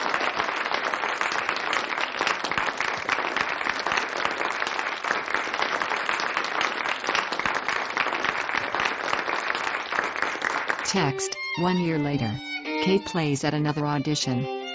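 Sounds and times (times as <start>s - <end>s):
audience applauding: 0.0s - 13.4s
speech: 10.9s - 14.6s.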